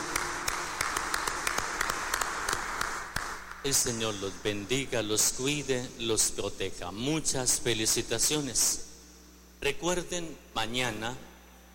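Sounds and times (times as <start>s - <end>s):
audience applause: 0.0s - 3.6s
speech: 3.6s - 8.9s, 9.6s - 11.3s.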